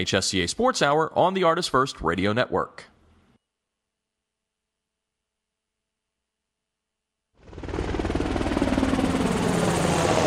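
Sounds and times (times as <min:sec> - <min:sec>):
speech: 0:00.0 - 0:02.9
Navy Seahawk military helicopter rotor noise: 0:07.4 - 0:10.2.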